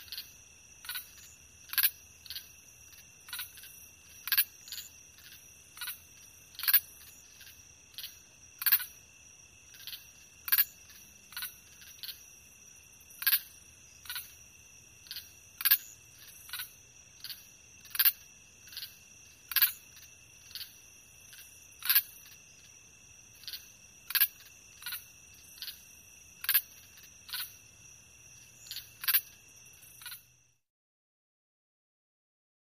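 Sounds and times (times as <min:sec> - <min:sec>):
several crickets chirping: 0:00.0 - 0:30.7.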